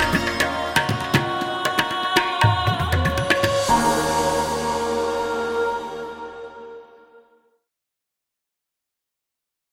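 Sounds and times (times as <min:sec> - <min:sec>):
motivational inspiring music from India: 0:00.0 - 0:07.3.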